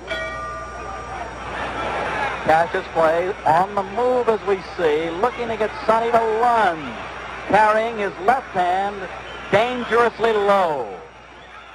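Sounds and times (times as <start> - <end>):
boxing bell ringing: 0.0 - 1.2
crowd noise: 0.0 - 11.7
speech: 2.5 - 11.1.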